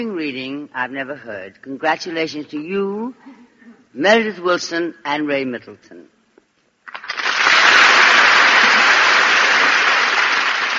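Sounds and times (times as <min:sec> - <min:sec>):
speech: 0:00.0 - 0:06.1
audience applause: 0:06.9 - 0:10.7.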